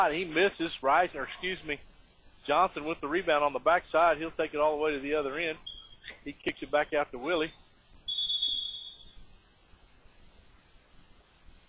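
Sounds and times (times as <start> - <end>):
speech: 0.0 - 7.6
referee blowing a whistle: 5.6 - 6.1, 8.0 - 9.2.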